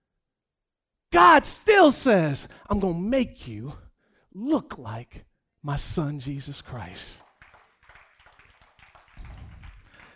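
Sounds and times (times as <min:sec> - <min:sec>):
speech: 0:01.1 - 0:03.8, 0:04.4 - 0:07.2
few people clapping: 0:07.1 - 0:10.1.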